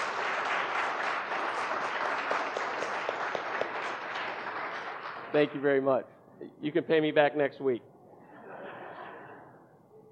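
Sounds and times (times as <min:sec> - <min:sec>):
round of applause: 0:00.0 - 0:05.6
speech: 0:05.3 - 0:07.9
laughter: 0:08.2 - 0:09.6.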